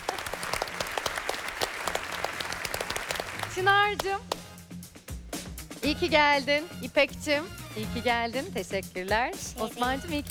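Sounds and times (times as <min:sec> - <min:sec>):
audience applause: 0:00.0 - 0:03.7
speech: 0:03.6 - 0:04.4, 0:05.8 - 0:10.3.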